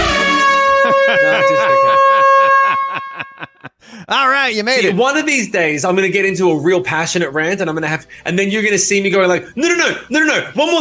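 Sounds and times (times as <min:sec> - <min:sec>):
timer buzzer: 0:00.0 - 0:03.4
laughter: 0:00.2 - 0:05.0
speech: 0:04.1 - 0:10.7.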